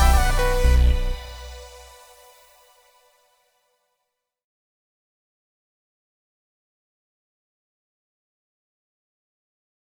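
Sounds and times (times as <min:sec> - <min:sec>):
techno beat: 0:00.0 - 0:02.0.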